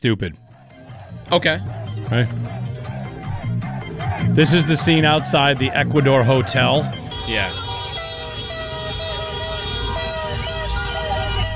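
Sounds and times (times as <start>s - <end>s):
speech: 0.0s - 0.5s, 1.3s - 2.6s, 4.2s - 7.6s
street and crowd noise: 0.4s - 11.5s
car horn honking in a rhythm: 3.8s - 11.5s.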